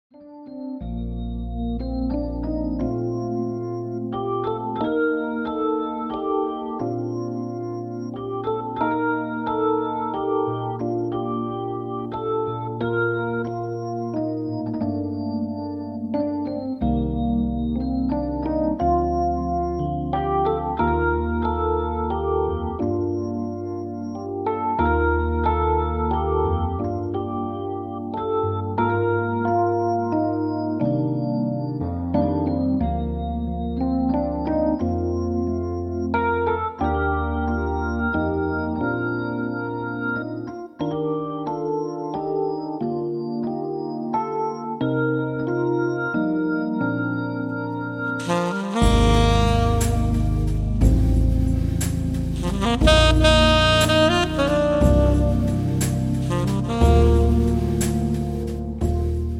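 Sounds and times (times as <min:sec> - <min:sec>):
Christmas jazz classics: 0:00.8 - 0:31.0, 0:32.2 - 0:59.3.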